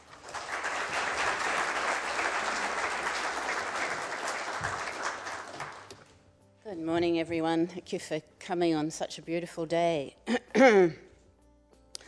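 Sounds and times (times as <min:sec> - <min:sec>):
audience applause welcoming a speaker at the Sydney Architecture Festival 2018: 0:00.0 - 0:06.0
speech: 0:06.9 - 0:11.0.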